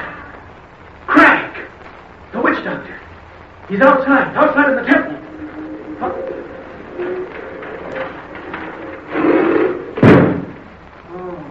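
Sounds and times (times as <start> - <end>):
speech: 3.7 - 5.1
faint tonal sounds: 4.0 - 10.0
heavy door grinding and slamming shut: 4.9 - 10.7.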